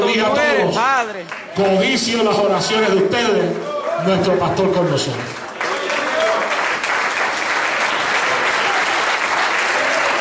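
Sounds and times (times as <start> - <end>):
speech: 0.2 - 5.4
audience applauding: 4.9 - 10.1.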